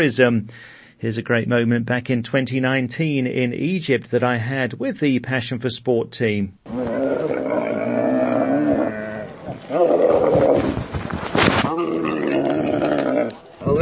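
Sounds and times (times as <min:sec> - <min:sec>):
speech: 0:00.0 - 0:07.6
camel groaning in the desert near the pyramids in Egypt: 0:06.7 - 0:13.7.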